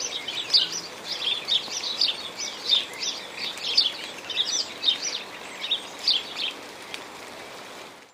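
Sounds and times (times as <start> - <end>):
sparrows chirping in rain: 0.0 - 6.6
rain: 0.0 - 8.1.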